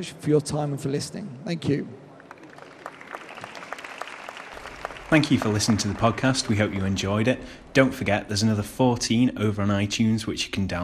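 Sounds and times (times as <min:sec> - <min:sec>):
speech: 0:00.0 - 0:02.0, 0:05.1 - 0:10.8
round of applause: 0:02.1 - 0:07.7.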